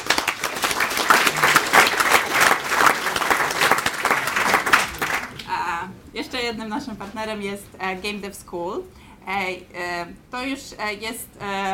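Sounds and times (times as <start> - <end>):
audience applause: 0.0 - 5.4
speech: 6.3 - 11.7.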